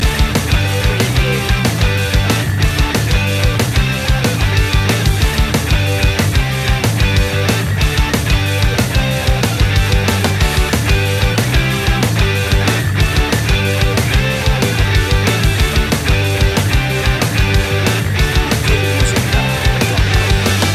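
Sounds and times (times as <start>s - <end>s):
American summer music loop: 0.0s - 20.7s.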